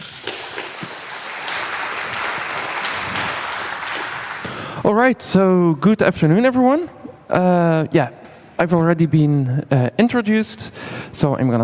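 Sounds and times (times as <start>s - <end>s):
audience applause: 0.0s - 4.8s
speech: 5.0s - 11.6s.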